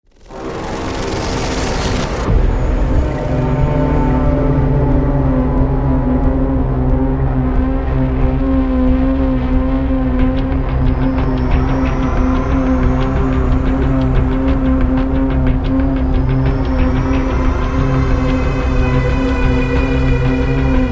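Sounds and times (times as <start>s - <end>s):
horror music: 0.1s - 20.9s.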